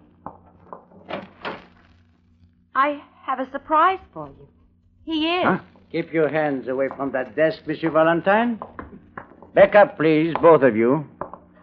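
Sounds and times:
closet door being opened: 0.9 - 1.9
speech: 2.8 - 8.8, 9.5 - 11.1.

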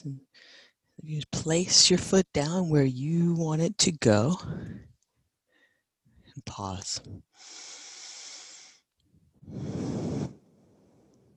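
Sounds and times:
speech: 0.0 - 4.9, 6.4 - 7.7, 9.5 - 10.1
slow breaths during a guided breathing exercise: 0.3 - 0.9, 4.4 - 6.3, 7.3 - 11.3.

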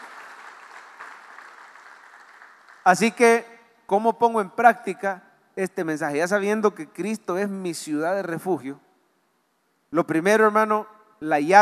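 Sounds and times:
audience applauding: 0.0 - 3.0
speech: 2.8 - 8.8, 9.9 - 11.6.

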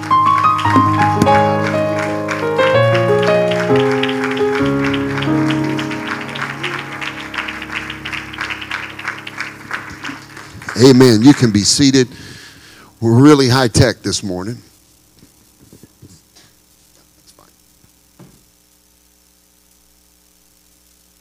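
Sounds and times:
audience clapping hands in praise: 0.0 - 12.4
keyboard or organ chords: 0.0 - 14.2
speech: 10.8 - 12.4, 13.0 - 14.7.

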